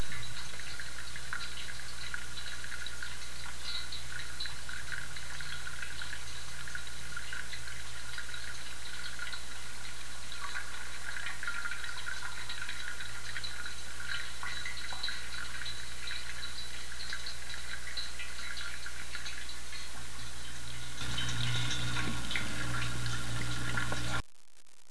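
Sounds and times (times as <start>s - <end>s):
fountain: 0.0s - 24.2s.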